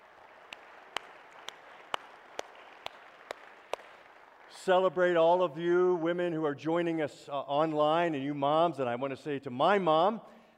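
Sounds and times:
crowd round of applause: 0.0 - 5.0
speech: 4.6 - 10.4.

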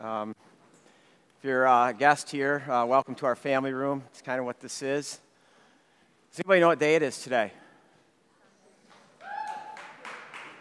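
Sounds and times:
speech: 0.0 - 0.6, 1.4 - 5.2, 6.3 - 7.6
audience clapping: 8.9 - 10.5
high-pitched whoop: 9.2 - 10.1.

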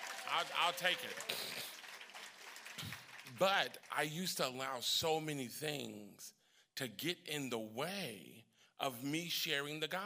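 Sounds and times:
audience clapping: 0.0 - 4.3
speech: 0.3 - 1.6, 2.8 - 10.0.

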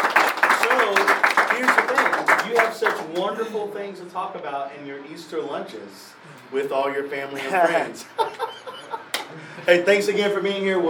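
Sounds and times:
audience applause for a panel: 0.0 - 3.0
speech: 2.8 - 8.6, 9.6 - 10.8
laughter: 7.3 - 9.7.

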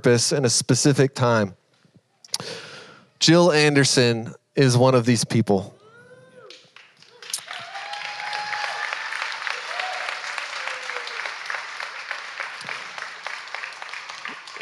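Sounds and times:
speech: 0.0 - 1.6, 3.2 - 5.8
audience applauding: 6.4 - 14.6.

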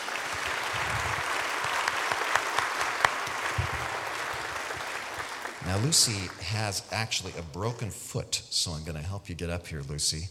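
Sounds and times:
audience applause welcoming a speaker onto a stage: 0.0 - 7.8
speech: 5.7 - 10.3.

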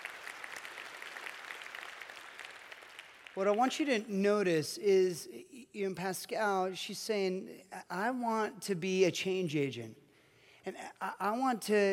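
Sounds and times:
audience applause: 0.0 - 3.4
speech: 3.4 - 10.0, 10.6 - 11.9.

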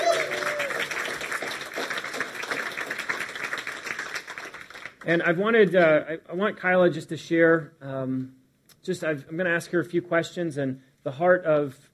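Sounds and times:
crowd clapping welcoming a guest: 0.0 - 5.2
speech: 5.0 - 11.9.

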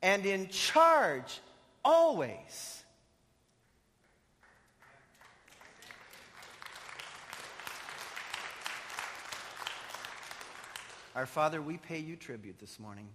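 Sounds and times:
speech: 0.0 - 2.8, 11.2 - 13.1
audience applauding: 4.4 - 11.2.

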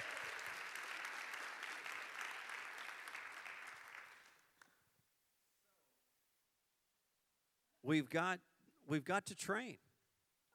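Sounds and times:
audience applause: 0.0 - 4.4
speech: 7.9 - 9.8.

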